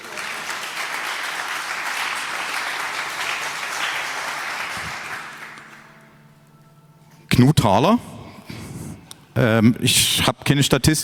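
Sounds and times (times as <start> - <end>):
audience applause: 0.0 - 6.2
speech: 7.4 - 8.1, 9.4 - 11.0.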